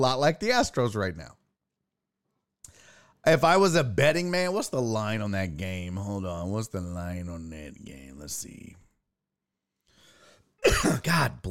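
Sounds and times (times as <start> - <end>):
speech: 0.0 - 1.4, 3.2 - 8.8, 10.6 - 11.5
harsh breathy cough: 10.6 - 11.4.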